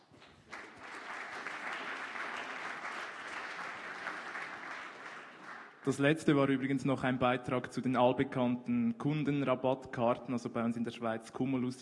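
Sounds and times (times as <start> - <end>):
audience applause: 0.0 - 5.8
speech: 5.8 - 11.8.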